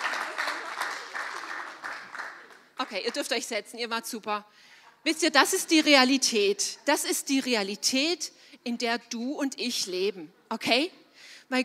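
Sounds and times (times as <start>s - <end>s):
audience applause at a church gathering: 0.0s - 2.8s
speech: 2.8s - 11.6s.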